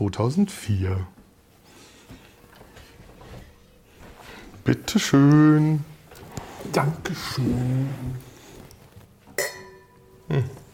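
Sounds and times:
speech: 0:00.0 - 0:01.2, 0:04.7 - 0:05.9, 0:06.6 - 0:08.3, 0:10.3 - 0:10.6
wine glasses clinking: 0:09.4 - 0:10.3.

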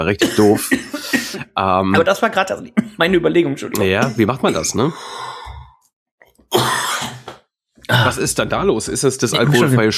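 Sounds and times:
speech: 0:00.0 - 0:05.4, 0:08.0 - 0:09.9
person coughing: 0:00.2 - 0:01.6, 0:04.0 - 0:04.9, 0:06.5 - 0:07.3.

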